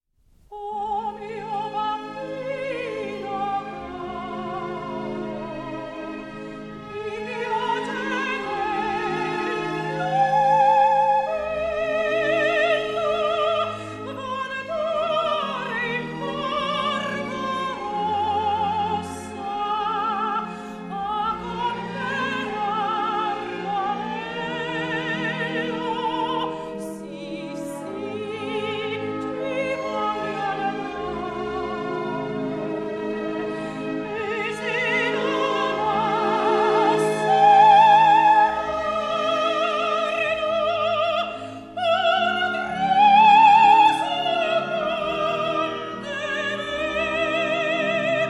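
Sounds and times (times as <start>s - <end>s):
vocals: 0.3s - 48.2s.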